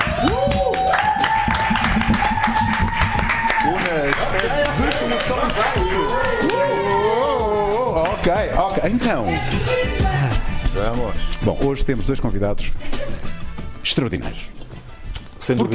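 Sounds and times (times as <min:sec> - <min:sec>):
audience clapping: 0:00.0 - 0:08.4
voices calling and whooping: 0:00.0 - 0:10.8
speech: 0:08.2 - 0:09.9, 0:10.8 - 0:13.3, 0:13.9 - 0:14.6, 0:15.5 - 0:15.7.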